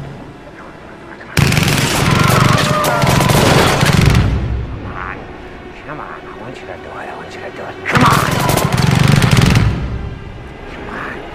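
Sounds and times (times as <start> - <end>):
film machine gun fire: 1.4 - 4.4, 8.0 - 10.0.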